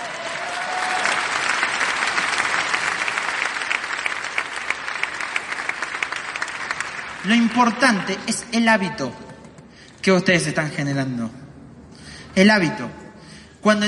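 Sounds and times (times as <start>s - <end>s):
audience clapping: 0.0s - 8.3s
speech: 7.2s - 9.2s, 10.0s - 11.4s, 12.4s - 13.0s, 13.6s - 13.8s.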